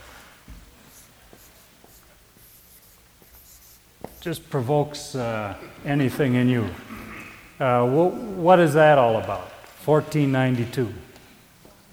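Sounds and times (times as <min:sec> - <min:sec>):
writing on a board: 0:00.9 - 0:04.3
speech: 0:04.2 - 0:06.9, 0:07.6 - 0:11.1.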